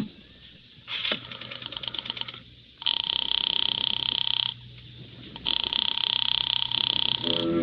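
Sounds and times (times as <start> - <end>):
telephone line clicks, buzzes and tones as a call is dialed: 1.2 - 4.6, 5.4 - 7.5.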